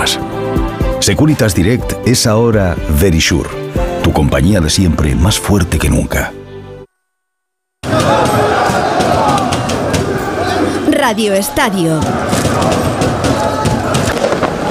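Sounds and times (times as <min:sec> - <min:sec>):
speech: 0:00.1 - 0:00.3, 0:01.0 - 0:06.4, 0:11.1 - 0:13.0
Paris street celebration crowd cheering and chanting at night: 0:07.8 - 0:14.6.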